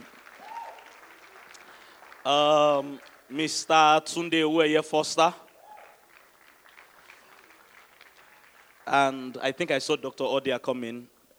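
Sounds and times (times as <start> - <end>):
audience applause: 0.0 - 4.6, 5.2 - 9.5
speech: 2.2 - 5.4, 8.9 - 11.1.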